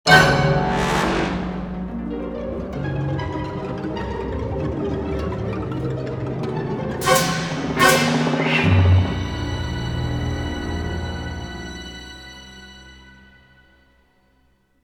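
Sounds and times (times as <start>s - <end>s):
eerie sound effect: 0.1s - 12.8s.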